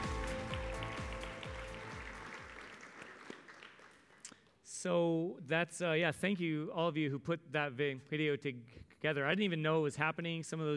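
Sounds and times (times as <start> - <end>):
audience clapping: 0.0 - 4.6
speech: 4.8 - 10.7.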